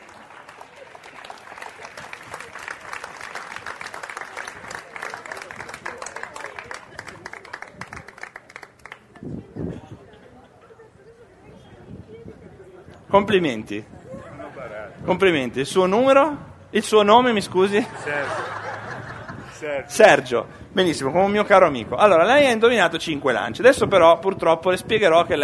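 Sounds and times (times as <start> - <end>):
audience applause: 0.0 - 9.2
speech: 13.2 - 14.0, 15.1 - 18.6, 19.6 - 25.4
laughter: 14.0 - 15.1, 17.7 - 21.9.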